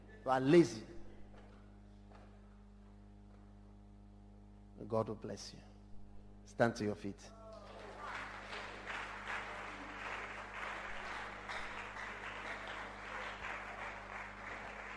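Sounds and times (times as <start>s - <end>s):
speech: 0.2s - 0.9s, 4.8s - 5.7s, 6.5s - 7.4s
audience clapping: 7.5s - 14.9s.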